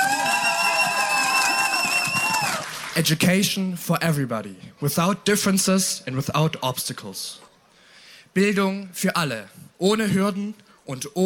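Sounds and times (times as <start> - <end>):
audience applause and cheering: 0.0 - 3.1
speech: 3.0 - 7.4, 8.4 - 11.2.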